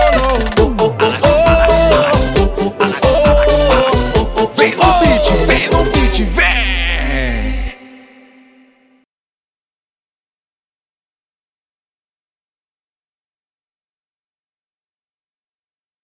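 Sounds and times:
music beat: 0:00.0 - 0:07.7.

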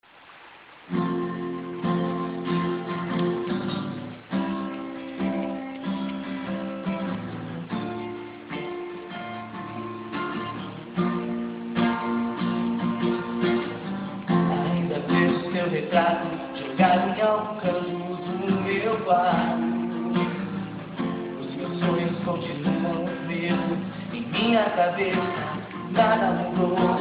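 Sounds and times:
acoustic guitar: 0:00.9 - 0:26.9
voice: 0:14.3 - 0:26.9.

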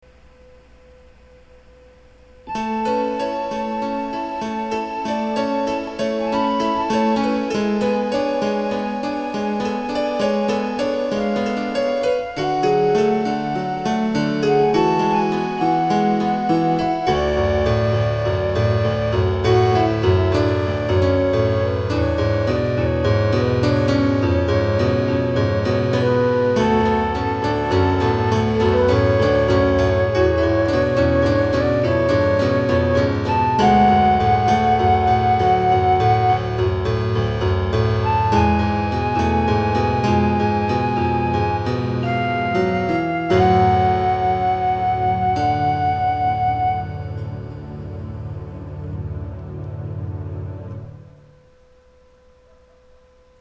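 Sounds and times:
nostalgic MPB instrumental: 0:02.5 - 0:51.3.

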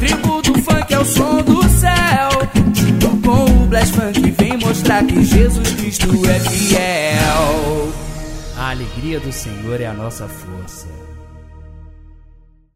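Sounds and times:
pancadao funk beat: 0:00.0 - 0:09.8.

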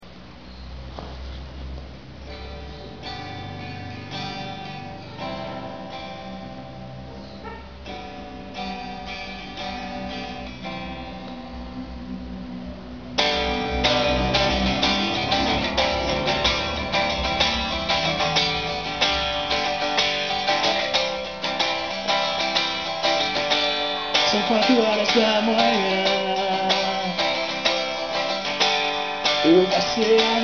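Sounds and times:
acoustic music: 0:00.0 - 0:30.4.

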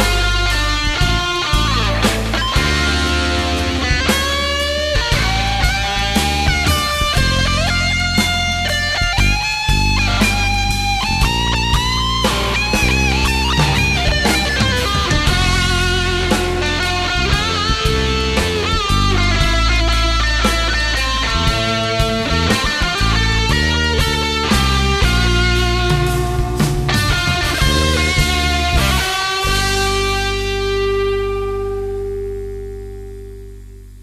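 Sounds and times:
guitar string bend through valve amplifier: 0:00.0 - 0:34.0.

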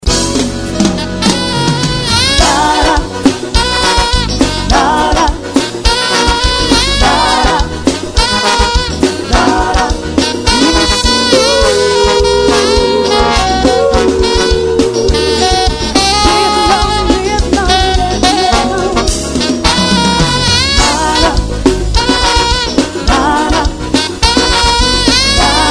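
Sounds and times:
live forro music: 0:00.0 - 0:25.7.

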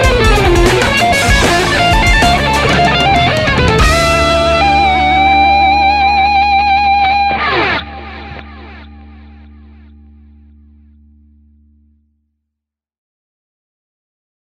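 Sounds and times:
funk fusion guitar improvisation: 0:00.0 - 0:11.2.

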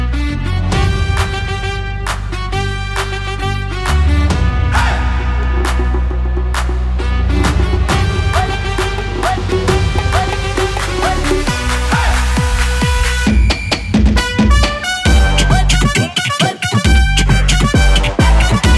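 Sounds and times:
funk remix: 0:00.1 - 0:18.7.

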